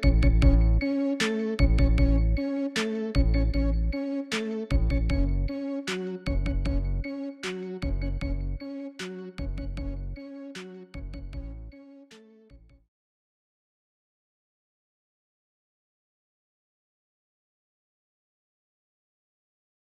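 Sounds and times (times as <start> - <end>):
lo-fi rave music: 0.0 - 12.2.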